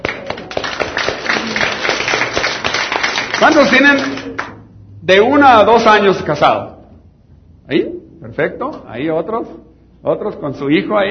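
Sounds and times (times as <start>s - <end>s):
audience applause for newlyweds: 0.0s - 4.6s
speech: 3.4s - 4.2s, 5.0s - 6.7s, 7.7s - 11.0s.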